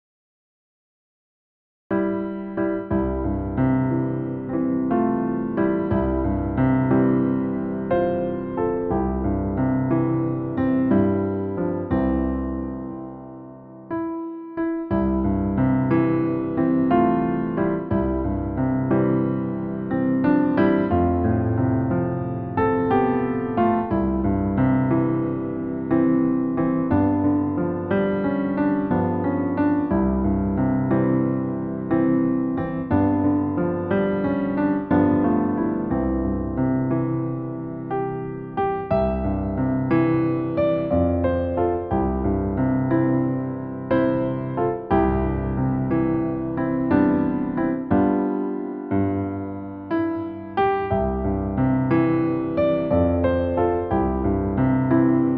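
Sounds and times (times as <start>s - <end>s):
solo piano: 1.9s - 55.3s.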